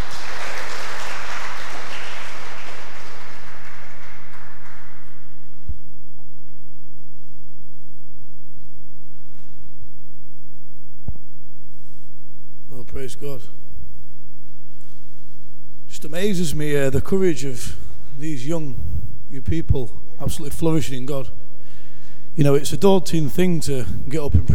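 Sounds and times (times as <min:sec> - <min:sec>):
church audience applause welcoming a speaker: 0:00.0 - 0:05.5
low steady hum: 0:00.0 - 0:24.5
speech: 0:13.1 - 0:13.6, 0:16.0 - 0:21.4, 0:22.4 - 0:24.5.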